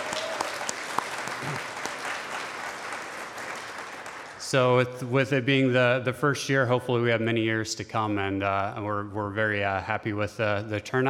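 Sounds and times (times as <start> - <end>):
audience clapping: 0.0 - 4.6
speech: 4.5 - 11.0.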